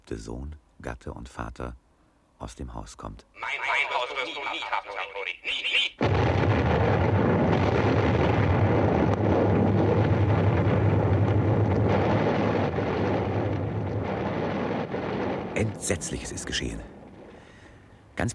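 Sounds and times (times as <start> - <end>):
speech: 0.1 - 1.8, 2.4 - 6.9, 15.6 - 17.0
house explosion aftermath roar: 6.0 - 17.9.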